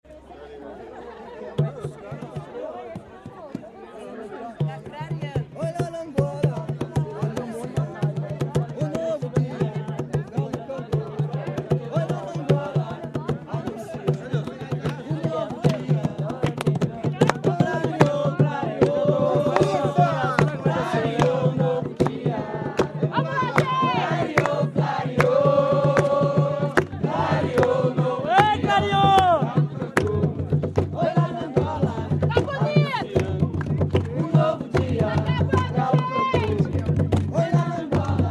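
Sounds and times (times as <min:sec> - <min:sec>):
jongo music from Guaratinguetá: 0:04.5 - 0:38.2.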